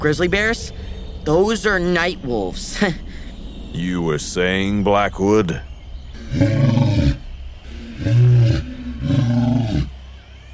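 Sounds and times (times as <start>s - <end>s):
speech: 0.0s - 6.8s
lion roaring: 6.1s - 10.5s.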